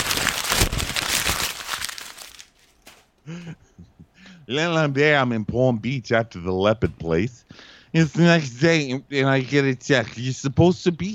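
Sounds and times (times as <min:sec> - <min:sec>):
tissue paper crinkling: 0:00.0 - 0:03.1
speech: 0:03.3 - 0:11.1.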